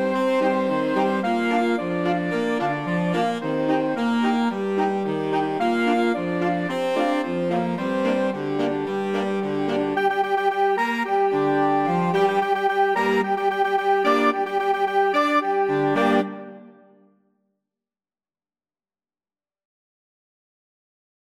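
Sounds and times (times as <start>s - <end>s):
flexible mixed ensemble of 4 players: 0.0s - 16.9s.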